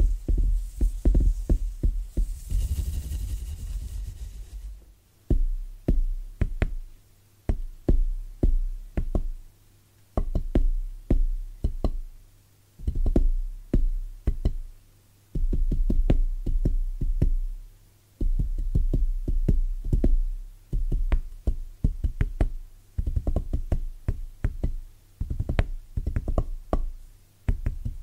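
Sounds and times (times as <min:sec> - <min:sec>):
rustling scrape: 0:00.0 - 0:05.0
soft bassy tapping: 0:00.0 - 0:09.5, 0:10.1 - 0:12.2, 0:12.8 - 0:28.0
low steady hum: 0:00.0 - 0:28.0.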